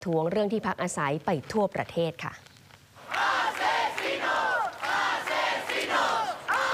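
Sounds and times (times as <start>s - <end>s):
speech: 0.0s - 2.5s
protest crowd shouting: 3.0s - 6.7s.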